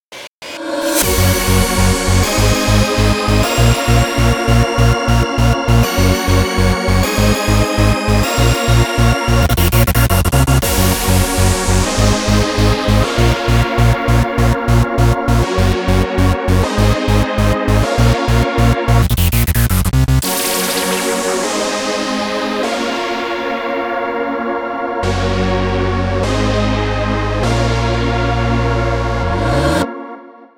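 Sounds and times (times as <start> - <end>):
background music: 0.5 - 19.1, 20.2 - 30.3.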